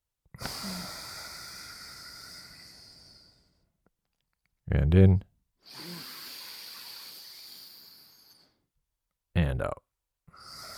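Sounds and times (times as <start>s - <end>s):
long airy breath drawn through one nostril in a breathing exercise: 0.4s - 3.7s, 5.6s - 8.6s, 10.3s - 10.7s
speech: 4.7s - 5.9s, 9.6s - 9.8s.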